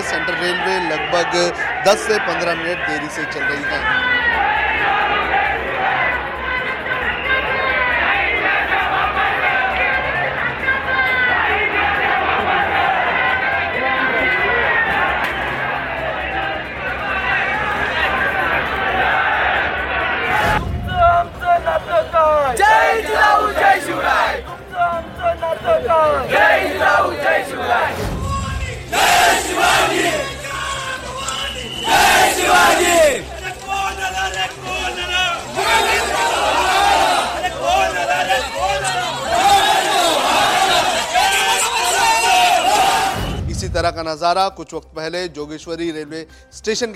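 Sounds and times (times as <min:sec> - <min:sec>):
protest crowd chanting at railway station: 0:00.0 - 0:43.5
speech: 0:00.1 - 0:05.0, 0:43.7 - 0:46.9
whistles: 0:31.2 - 0:32.5.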